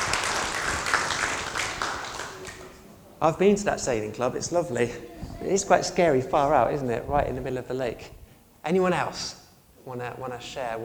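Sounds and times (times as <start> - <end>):
crowd applauding: 0.0 - 2.8
speech: 3.2 - 10.8.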